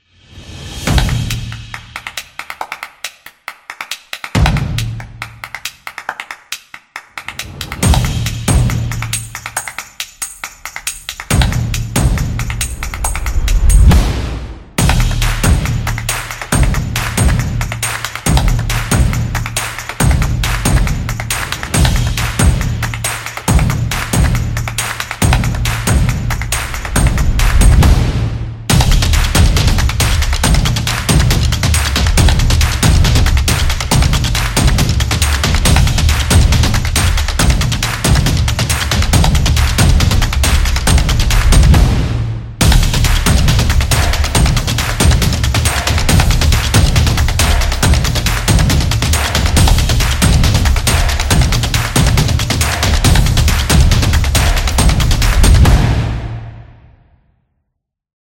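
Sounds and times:
percussion: 0.0s - 57.2s.

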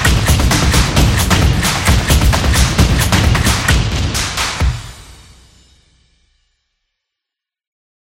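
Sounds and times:
fun beat: 0.0s - 5.8s.

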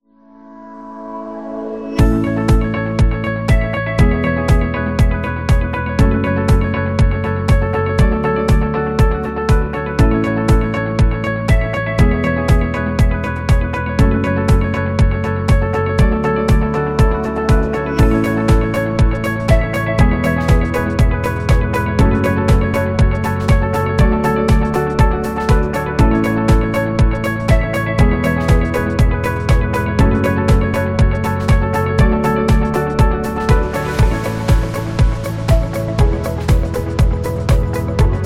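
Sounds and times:
corporate music: 0.0s - 38.2s.

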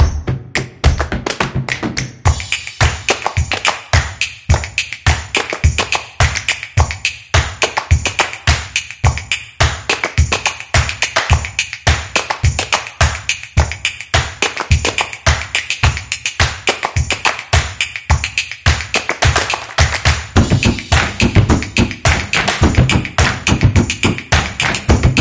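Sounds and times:
energetic claps as street percussion: 0.0s - 25.1s.

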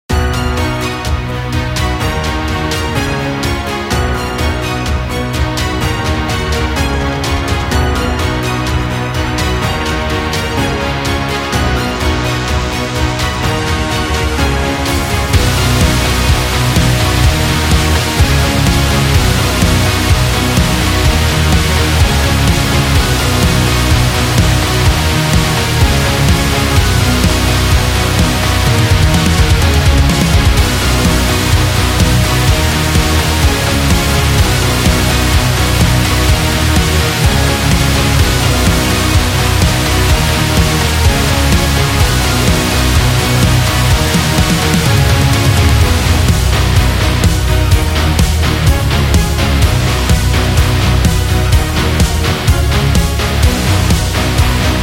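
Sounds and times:
symphonic metal music: 0.1s - 54.8s.

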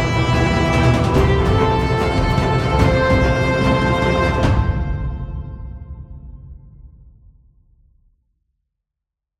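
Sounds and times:
epic inspiring music: 0.0s - 7.3s.

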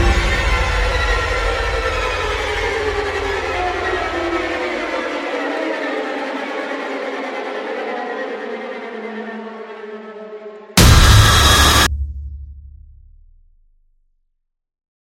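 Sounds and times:
horror piano music: 0.0s - 11.9s.

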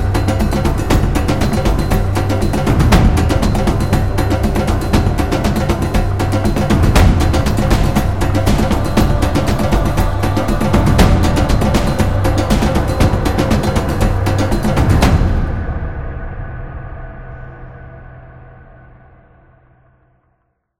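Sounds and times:
African drum: 0.0s - 16.3s.

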